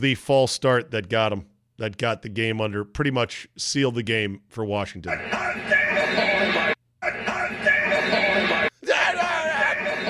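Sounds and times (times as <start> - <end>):
speech: 0.0 - 6.6
laughter: 5.2 - 10.0
person screaming excitedly in video clip: 8.8 - 10.0.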